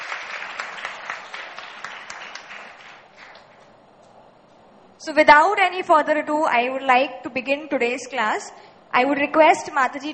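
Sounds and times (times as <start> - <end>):
audience applause: 0.0 - 3.6
speech: 5.0 - 10.1.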